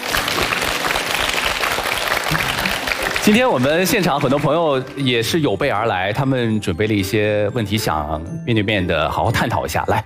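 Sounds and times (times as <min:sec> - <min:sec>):
audience applause: 0:00.0 - 0:05.4
speech: 0:03.2 - 0:10.0.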